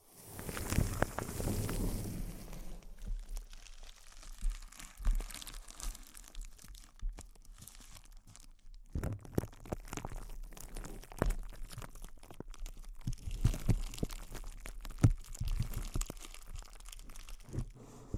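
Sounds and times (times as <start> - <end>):
crinkling: 0.0 - 18.1.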